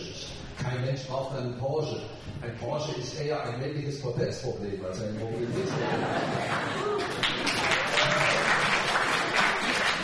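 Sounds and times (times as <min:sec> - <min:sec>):
speech: 0:00.9 - 0:08.2
laughter: 0:05.4 - 0:07.5
audience applause: 0:06.3 - 0:10.0.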